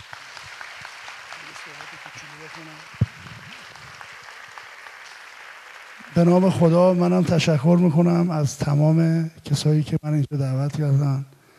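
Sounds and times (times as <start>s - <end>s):
audience applause honouring a guest: 0.0s - 8.1s
speech: 1.7s - 3.1s, 6.1s - 11.3s.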